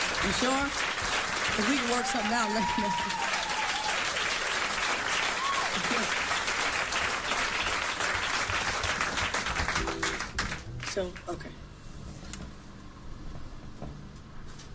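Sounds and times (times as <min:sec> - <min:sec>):
audience clapping: 0:00.0 - 0:11.5
speech: 0:00.2 - 0:03.3, 0:11.0 - 0:11.6.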